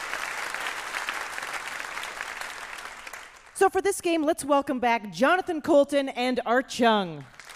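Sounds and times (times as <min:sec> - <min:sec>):
audience applause: 0:00.0 - 0:03.6, 0:07.3 - 0:07.5
speech: 0:03.6 - 0:07.4.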